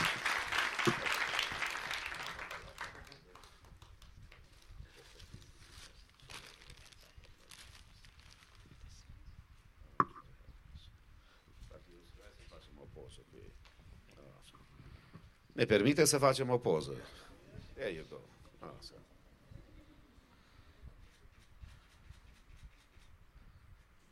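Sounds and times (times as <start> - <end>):
loud audience applause: 0.0 - 3.9
speech: 15.6 - 19.2.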